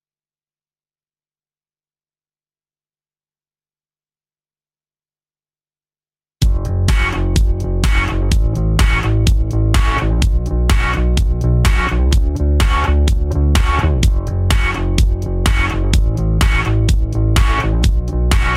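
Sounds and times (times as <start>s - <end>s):
instrumental music: 6.4s - 18.5s.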